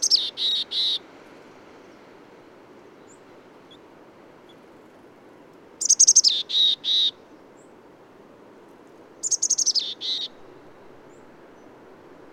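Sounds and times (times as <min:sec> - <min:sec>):
bird song phrase of high descending trill and buzzy notes: 0:00.0 - 0:01.0, 0:05.8 - 0:07.7, 0:09.2 - 0:10.4.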